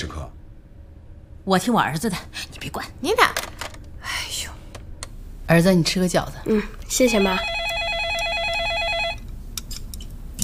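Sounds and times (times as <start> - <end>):
speech: 1.4 - 3.5, 5.5 - 7.6
telephone ringing with electronic trill: 7.1 - 9.3.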